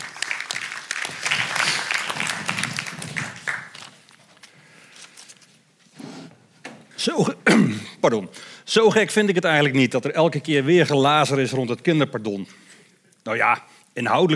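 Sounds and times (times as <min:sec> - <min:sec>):
applause: 0:00.0 - 0:04.5
speech: 0:01.1 - 0:01.4, 0:07.0 - 0:12.6, 0:13.3 - 0:14.3.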